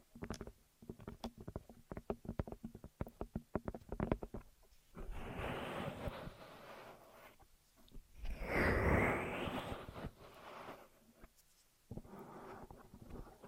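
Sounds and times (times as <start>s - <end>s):
ear massage taps and crackles: 0.0s - 4.9s
ear massage rubbing and rustling: 0.0s - 13.4s.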